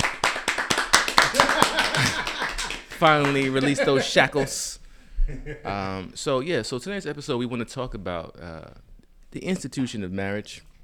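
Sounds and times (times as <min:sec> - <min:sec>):
applause: 0:00.0 - 0:04.2
laughter: 0:01.2 - 0:06.1
speech: 0:03.0 - 0:10.7.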